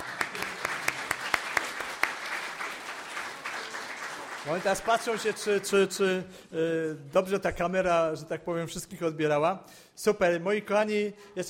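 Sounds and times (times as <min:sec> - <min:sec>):
audience applause: 0:00.0 - 0:06.0
speech: 0:04.4 - 0:11.4.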